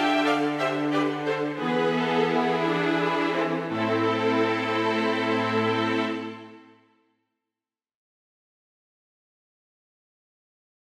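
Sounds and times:
string quartet playing a minuet: 0.0s - 6.8s.

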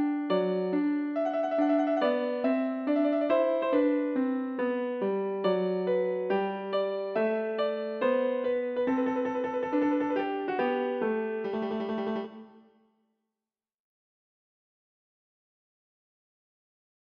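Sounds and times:
improvised piano intro: 0.0s - 12.6s.

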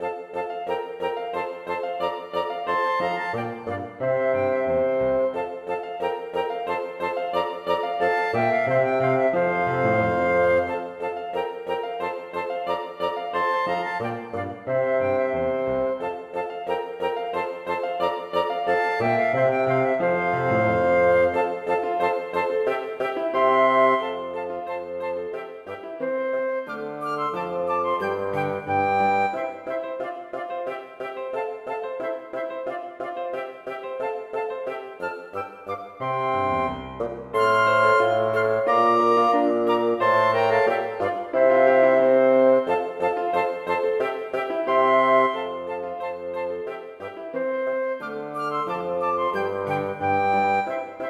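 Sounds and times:
bassoon: 0.0s - 51.0s
piano: 0.0s - 51.0s
two flutes: 0.0s - 51.0s.

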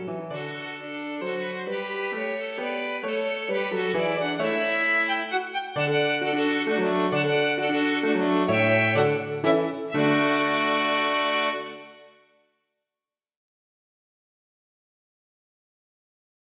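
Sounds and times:
minuet for two violins and piano: 0.0s - 12.2s.

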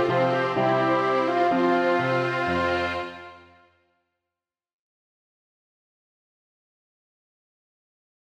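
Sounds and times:
piano: 0.0s - 3.6s
two violins: 0.0s - 3.6s
trumpet: 0.0s - 3.8s.

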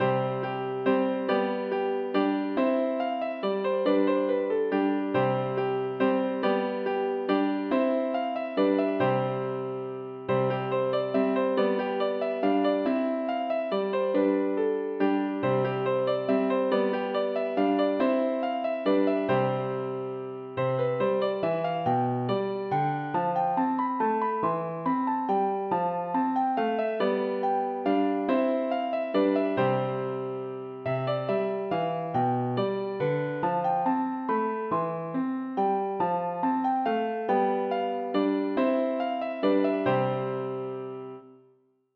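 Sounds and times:
piano minuet: 0.0s - 41.7s.

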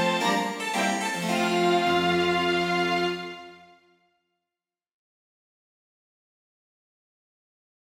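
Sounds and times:
minuet for two violins, cello and harpsichord: 0.0s - 3.8s.

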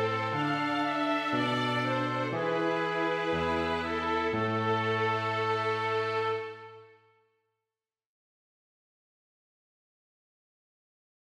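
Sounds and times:
two violins: 0.0s - 6.8s
piano: 0.0s - 7.0s
trumpet: 0.0s - 7.0s.

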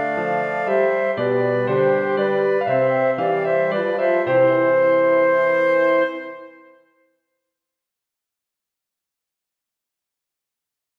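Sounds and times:
minuet for two flutes horn and piano: 0.0s - 7.1s.

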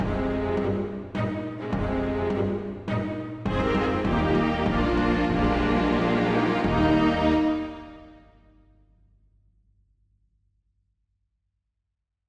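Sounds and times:
string quintet and drums playing a minuet: 0.0s - 8.4s.

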